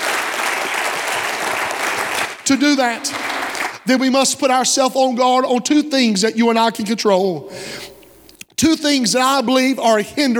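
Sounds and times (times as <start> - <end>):
audience hand clapping: 0.0 - 2.4, 3.0 - 3.8
speech: 2.5 - 3.3, 3.9 - 7.9, 8.6 - 10.3.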